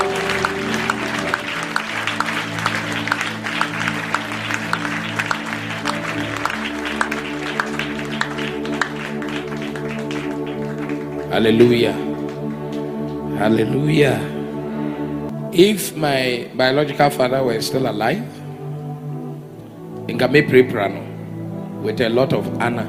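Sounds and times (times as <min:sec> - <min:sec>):
audience clapping: 0:00.0 - 0:13.3
sustained keyboard or organ chords: 0:00.0 - 0:22.8
speech: 0:11.4 - 0:12.1, 0:13.4 - 0:14.3, 0:15.6 - 0:18.4, 0:20.2 - 0:21.1, 0:21.8 - 0:22.8.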